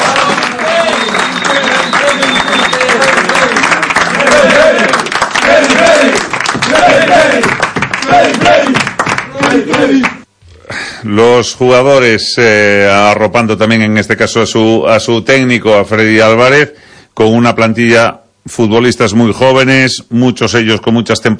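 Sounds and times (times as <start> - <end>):
crowd applauding: 0.0 - 10.2
speech: 11.1 - 21.3.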